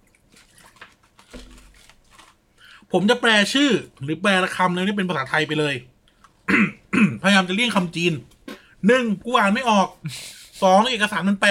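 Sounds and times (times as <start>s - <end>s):
person sipping water: 0.0s - 2.0s
speech: 2.9s - 5.9s, 7.4s - 11.5s.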